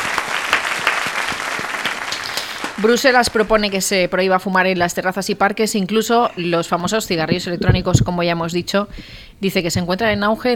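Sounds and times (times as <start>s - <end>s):
applause for the panel of guests on a talk show: 0.0s - 4.0s
speech: 2.8s - 10.5s.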